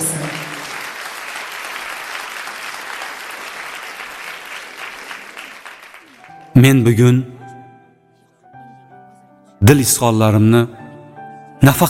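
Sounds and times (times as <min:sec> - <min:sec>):
wedding crowd applause welcoming the couple's parents: 0:00.0 - 0:06.6
speech: 0:06.6 - 0:07.3, 0:09.7 - 0:10.8, 0:11.6 - 0:11.8.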